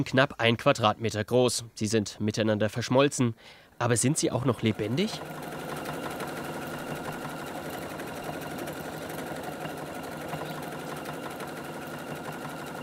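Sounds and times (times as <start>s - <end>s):
speech: 0.0s - 5.6s
sewing machine running: 4.2s - 12.8s.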